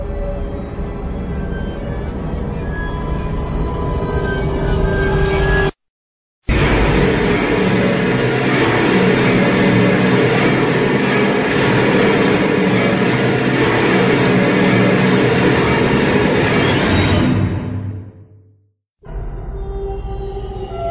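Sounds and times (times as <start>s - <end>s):
horror music: 0.0s - 5.8s, 6.5s - 20.9s
horror sound effects: 0.0s - 5.8s, 6.5s - 18.4s.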